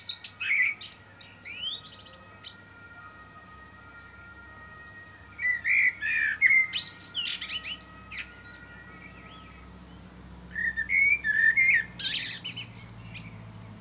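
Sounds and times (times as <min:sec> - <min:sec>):
common blackbird Turdus merula whistled warbling song with shrill twitters: 0:00.0 - 0:02.5, 0:05.4 - 0:09.7, 0:10.5 - 0:13.7.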